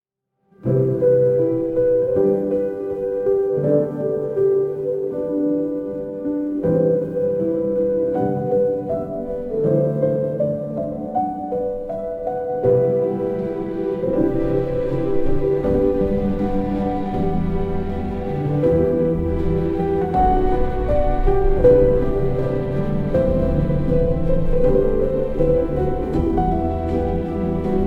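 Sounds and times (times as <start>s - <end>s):
music: 0.2s - 27.8s.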